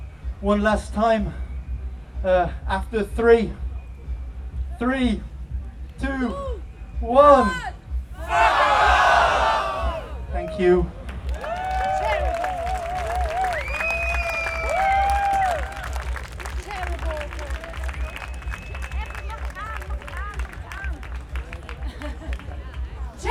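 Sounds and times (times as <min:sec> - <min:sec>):
speech: 0:00.4 - 0:01.4, 0:02.2 - 0:03.6, 0:04.8 - 0:05.3, 0:06.0 - 0:07.8, 0:10.6 - 0:11.0
cheers and whoops: 0:08.2 - 0:10.7, 0:11.3 - 0:19.8
audience clapping: 0:11.1 - 0:23.2.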